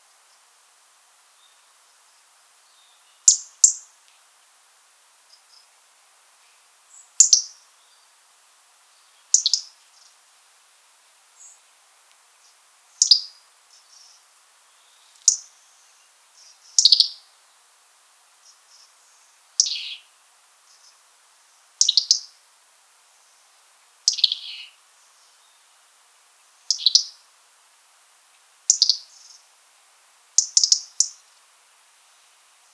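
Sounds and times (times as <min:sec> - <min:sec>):
European robin ticking calls: 0:03.3 - 0:03.8, 0:09.3 - 0:09.7, 0:13.0 - 0:13.3, 0:15.2 - 0:15.5, 0:16.8 - 0:17.2, 0:19.6 - 0:20.0, 0:21.8 - 0:22.3, 0:24.1 - 0:24.8, 0:26.7 - 0:27.2, 0:28.7 - 0:29.4, 0:30.4 - 0:31.2.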